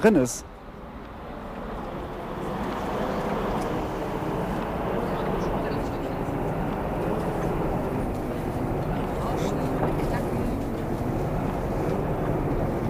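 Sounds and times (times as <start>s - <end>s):
tram rumbling, recording played back slowed: 0.0s - 12.8s.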